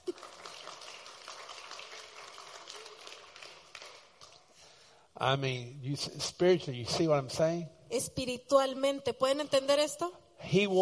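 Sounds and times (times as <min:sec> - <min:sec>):
audience applause: 0:00.0 - 0:04.5
speech: 0:05.2 - 0:10.8.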